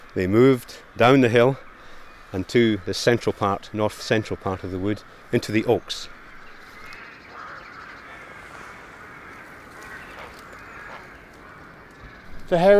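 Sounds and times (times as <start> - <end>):
speech: 0.2 - 1.7, 2.3 - 6.2, 12.5 - 12.7
rooks cawing: 0.4 - 12.7.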